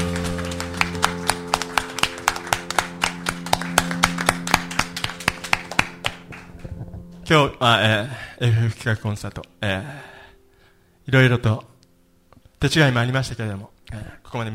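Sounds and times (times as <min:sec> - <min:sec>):
audience hand claps: 0:00.0 - 0:06.7
speech: 0:07.3 - 0:10.1, 0:11.1 - 0:11.7, 0:12.6 - 0:14.5.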